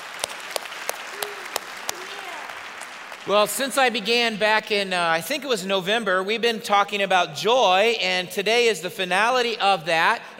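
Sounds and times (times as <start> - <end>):
audience applause in a church service: 0.0 - 4.1
speech: 3.2 - 10.3.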